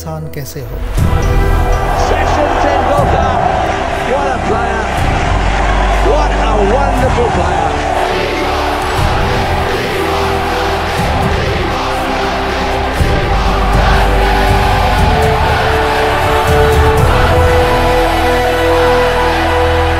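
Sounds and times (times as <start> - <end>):
inspirational heartfelt ringtone music: 0.2 - 19.9.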